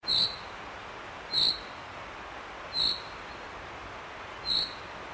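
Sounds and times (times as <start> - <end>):
chaffinch rain call: 0.0 - 0.6, 1.2 - 1.9, 2.7 - 3.6, 4.3 - 5.0.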